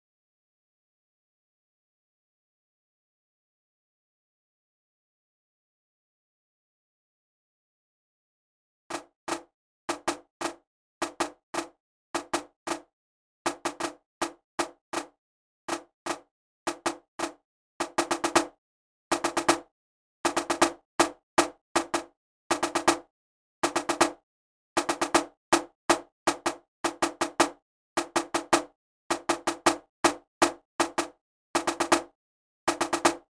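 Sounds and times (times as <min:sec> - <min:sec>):
drum at 160: 0:08.9 - 0:12.9, 0:13.5 - 0:15.1, 0:15.7 - 0:19.7, 0:20.3 - 0:24.2, 0:24.8 - 0:33.3.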